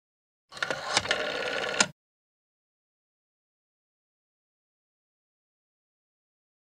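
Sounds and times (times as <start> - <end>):
telephone: 0.5 - 2.0.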